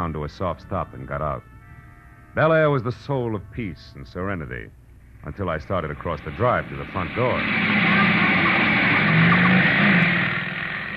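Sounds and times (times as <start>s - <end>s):
speech: 0.1s - 1.6s, 2.3s - 7.9s
motorcycle speeding past: 6.4s - 10.9s.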